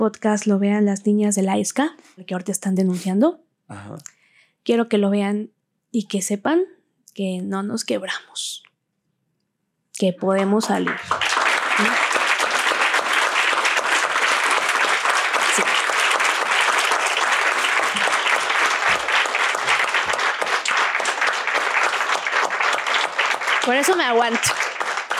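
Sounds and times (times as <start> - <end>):
speech: 0.0 - 8.7, 10.0 - 12.0, 23.7 - 24.6
audience applause from a large audience: 10.4 - 25.1.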